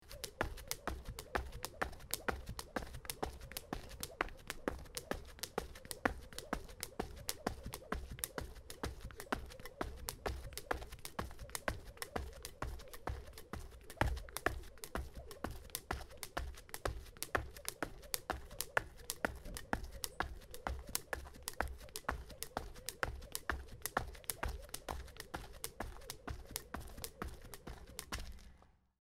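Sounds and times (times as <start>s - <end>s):
jump rope: 0.0s - 28.6s.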